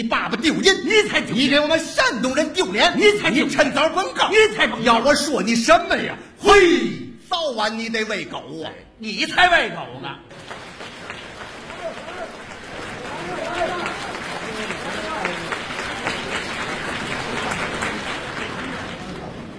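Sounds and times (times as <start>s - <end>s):
speech: 0.0s - 10.6s
audience applause: 10.3s - 19.5s.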